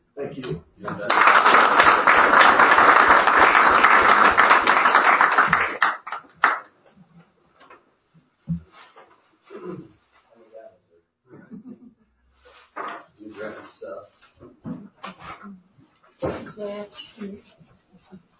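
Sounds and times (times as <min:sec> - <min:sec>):
audience applause: 0:00.9 - 0:06.6.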